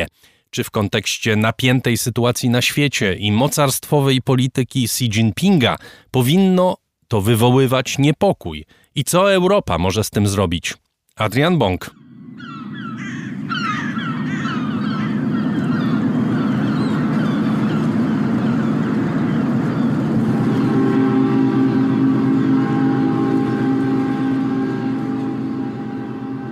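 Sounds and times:
speech: 0.5s - 12.0s
droning ship horn: 11.9s - 26.5s
harbor boat engines and water rumble: 12.1s - 26.5s
crows cawing: 12.2s - 20.2s.

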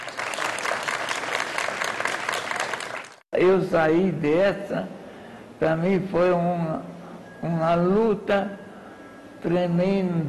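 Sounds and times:
group applause celebrating a patient's recovery: 0.0s - 3.2s
speech: 3.3s - 5.0s, 5.6s - 8.6s, 9.4s - 10.2s.

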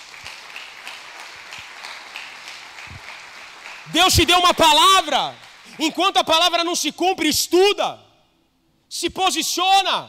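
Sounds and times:
audience applause: 0.0s - 6.2s
speech: 3.9s - 8.0s, 8.9s - 10.0s.

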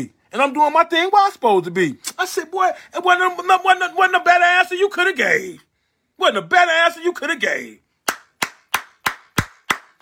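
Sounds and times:
speech: 0.0s - 7.8s
audience clapping: 8.1s - 9.9s.

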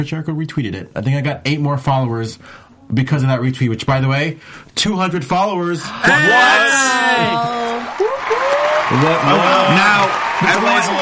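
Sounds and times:
speech: 0.0s - 10.9s
studio audience clapping politely: 7.3s - 10.9s.

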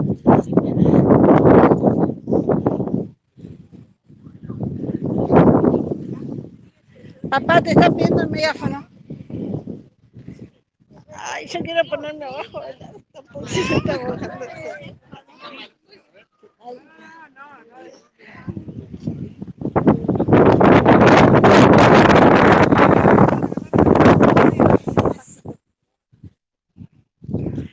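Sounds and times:
strong wind buffeting the microphone: 0.0s - 15.2s, 18.4s - 27.7s
speech: 7.3s - 8.9s, 11.4s - 15.8s
laughter: 12.4s - 17.1s.

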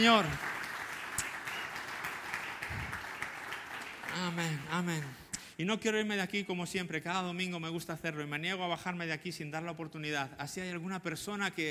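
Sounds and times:
speech: 0.0s - 0.5s, 4.2s - 11.6s
audience applause: 0.0s - 5.2s.

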